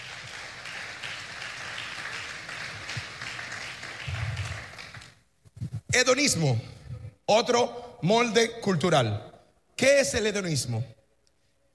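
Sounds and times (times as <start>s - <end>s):
audience applause: 0.0s - 5.2s
speech: 6.0s - 11.0s.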